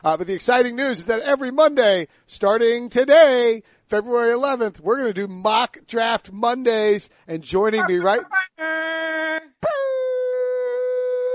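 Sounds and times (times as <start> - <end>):
speech: 0.0 - 9.8
voice imitating air horns: 7.8 - 11.3.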